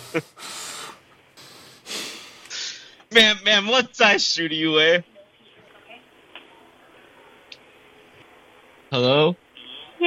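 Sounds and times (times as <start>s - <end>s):
sharp snort-like burst: 0.0s - 2.6s
exaggerated heavy raspy breathing from a person: 0.0s - 3.0s
speech: 0.1s - 0.5s, 3.2s - 5.1s, 8.9s - 9.4s.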